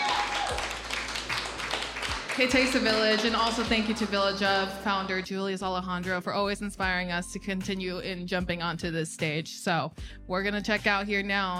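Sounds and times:
audience round of applause: 0:00.0 - 0:04.1
speech: 0:02.4 - 0:11.5.

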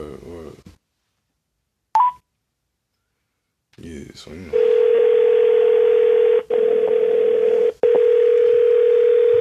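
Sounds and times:
speech: 0:03.8 - 0:04.8
telephone ringing tone on an outgoing call: 0:04.6 - 0:09.3.

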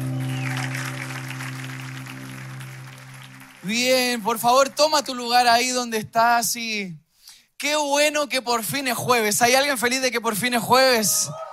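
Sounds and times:
audience applauding: 0:00.0 - 0:05.4
speech: 0:03.7 - 0:07.0, 0:07.6 - 0:11.5.

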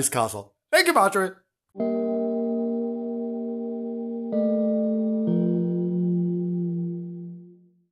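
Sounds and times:
speech: 0:00.0 - 0:02.0
music: 0:01.8 - 0:07.9.

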